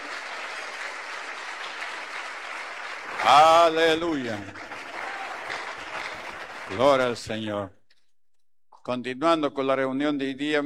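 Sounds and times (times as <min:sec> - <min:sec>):
audience applauding: 0:00.0 - 0:07.3
speech: 0:03.2 - 0:04.7, 0:06.7 - 0:07.8, 0:08.8 - 0:10.6.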